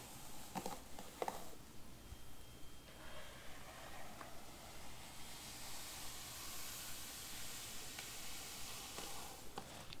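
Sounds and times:
faint low hum: 0.0s - 9.9s
hair being brushed with bristles: 3.5s - 9.9s.

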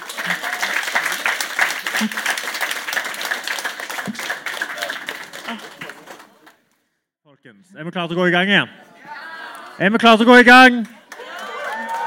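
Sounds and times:
audience applause for the panel: 0.0s - 6.6s, 10.8s - 12.0s
speech: 2.0s - 2.3s, 7.7s - 8.8s, 9.8s - 11.0s.

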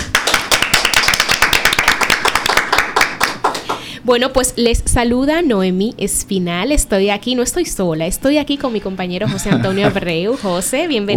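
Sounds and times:
applause: 0.0s - 3.9s
speech: 4.0s - 11.1s
laughter: 9.2s - 10.6s.

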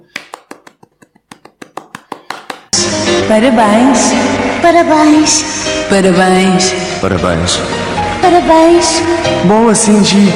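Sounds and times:
people clapping hands: 0.0s - 2.8s
speech: 3.3s - 10.3s.

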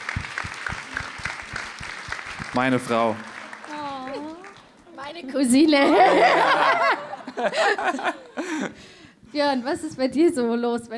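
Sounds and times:
audience clapping: 0.0s - 5.0s
speech: 2.6s - 3.3s, 5.2s - 8.7s, 9.3s - 10.9s
laughter: 5.8s - 8.8s.

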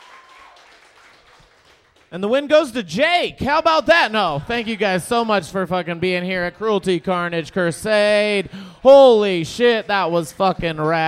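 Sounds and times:
audience applause: 0.0s - 2.1s
speech: 2.1s - 11.0s.

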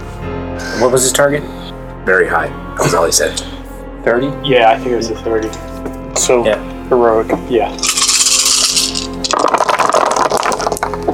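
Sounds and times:
speech: 0.6s - 8.0s
twelve dice rolling: 7.8s - 11.1s.

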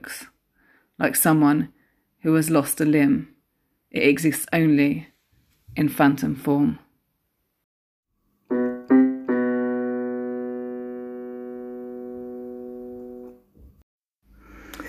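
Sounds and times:
speech: 0.0s - 0.3s, 1.0s - 3.3s, 3.9s - 5.1s, 5.8s - 6.8s
sounds made up on a musical keyboard: 8.4s - 13.4s.

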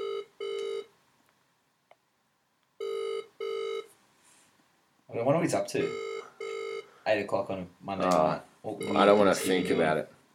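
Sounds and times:
phone line ringing on an outgoing call: 0.0s - 0.9s, 2.8s - 3.9s, 5.8s - 6.9s, 8.8s - 10.0s
speech: 5.2s - 6.2s, 7.1s - 10.1s.

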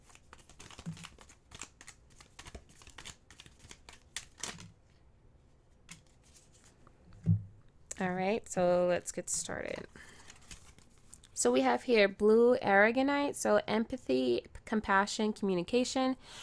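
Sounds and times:
crystal and gemstone oracle cards shuffled by hand: 0.0s - 4.7s, 5.8s - 6.8s, 10.2s - 11.3s
soft thump: 7.2s - 7.6s
speech: 8.0s - 10.1s, 11.4s - 16.4s.

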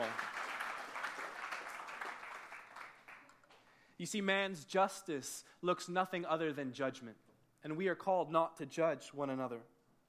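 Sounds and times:
crowd applause: 0.0s - 3.6s
speech: 4.0s - 9.7s.

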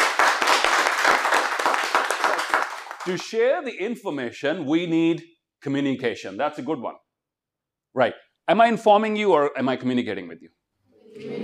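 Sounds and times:
audience applause: 0.0s - 3.2s
speech: 3.1s - 7.0s, 7.9s - 11.4s.

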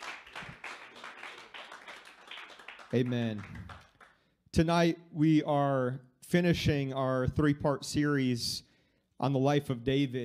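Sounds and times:
audience hand clap of praise: 0.0s - 4.2s
speech: 2.9s - 3.7s, 4.6s - 10.2s.

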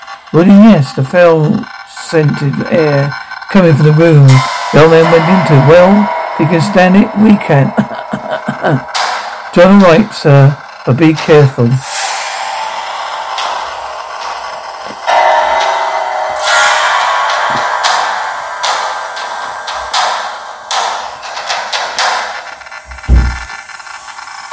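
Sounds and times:
speech: 0.4s - 7.9s, 8.6s - 8.9s, 9.5s - 11.9s
laughter: 7.7s - 8.9s
coughing: 7.7s - 9.0s
footsteps in the room: 13.4s - 18.4s, 20.8s - 24.4s.

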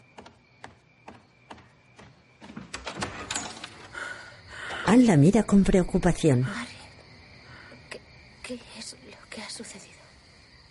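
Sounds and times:
house door latch and handle clicking and rattling: 2.4s - 3.9s
house door creaking and scraping open: 2.4s - 5.0s
speech: 4.9s - 6.7s.

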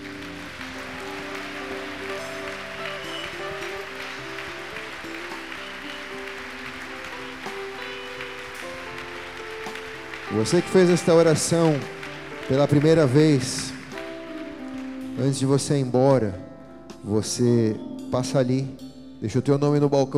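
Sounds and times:
church audience applause: 0.0s - 15.4s
speech: 10.4s - 13.7s, 15.2s - 20.1s.

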